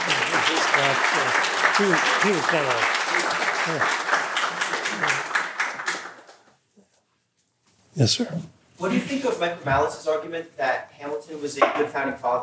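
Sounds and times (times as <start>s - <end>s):
audience applause: 0.0s - 6.5s
speech: 0.8s - 4.2s, 5.0s - 5.3s, 8.0s - 12.4s.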